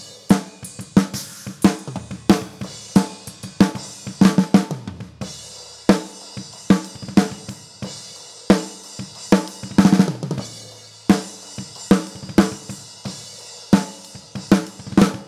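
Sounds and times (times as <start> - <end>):
snare drum: 0.0 - 5.2, 5.9 - 7.5, 8.5 - 10.5, 11.1 - 15.2.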